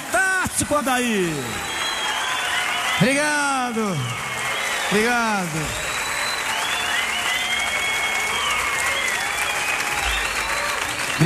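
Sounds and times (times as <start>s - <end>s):
audience applause: 0.0s - 11.2s
speech: 0.6s - 1.7s, 3.0s - 4.3s, 4.9s - 5.9s
faint whistle-like tones: 1.3s - 3.1s, 4.0s - 11.2s.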